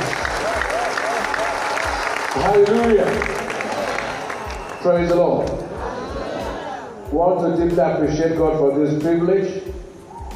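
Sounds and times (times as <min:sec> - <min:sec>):
audience applause: 0:00.0 - 0:05.2
speech: 0:02.4 - 0:03.4, 0:04.8 - 0:05.6, 0:07.1 - 0:09.7.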